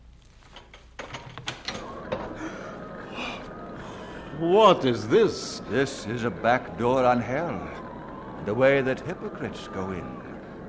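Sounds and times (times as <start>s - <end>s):
door in the side of a hill being opened: 0.5s - 2.5s
laughter: 1.8s - 10.6s
speech: 4.4s - 7.8s, 8.4s - 10.3s.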